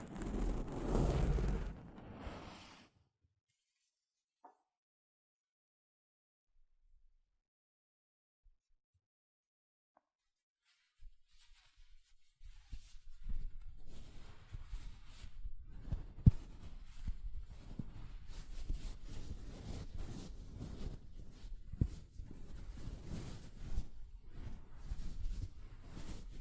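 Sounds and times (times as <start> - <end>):
soft fabric brushing against a microphone: 0.0 - 2.9, 10.7 - 26.4.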